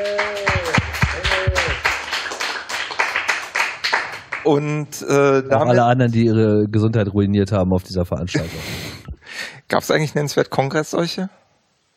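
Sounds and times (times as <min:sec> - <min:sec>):
audience applause: 0:00.0 - 0:04.5
speech: 0:04.4 - 0:08.9, 0:09.7 - 0:11.4.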